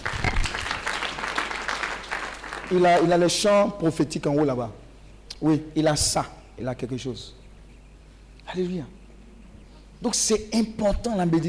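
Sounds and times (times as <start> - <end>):
audience applauding and cheering: 0.0 - 3.2
speech: 2.7 - 4.8, 5.4 - 7.4, 8.5 - 9.0, 10.0 - 11.4.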